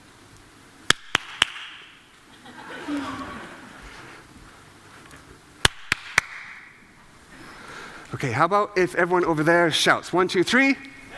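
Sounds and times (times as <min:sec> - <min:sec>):
hand clapping: 0:00.9 - 0:01.8, 0:05.6 - 0:06.6
laughter: 0:02.3 - 0:03.8
speech: 0:08.2 - 0:10.9.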